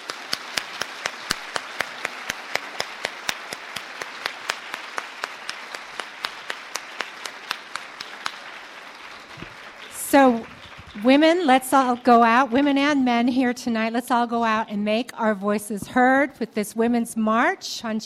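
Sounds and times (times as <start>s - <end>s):
audience applause: 0.0s - 13.0s
speech: 11.0s - 18.0s.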